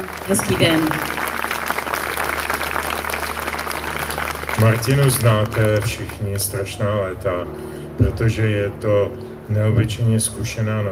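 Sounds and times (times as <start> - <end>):
audience applause: 0.0 - 6.6
speech: 0.3 - 1.2, 4.6 - 10.9.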